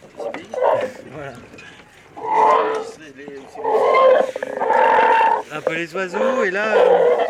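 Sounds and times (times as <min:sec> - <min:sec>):
floating pontoons creaking and groaning: 0:00.0 - 0:07.2
speech: 0:05.7 - 0:07.2.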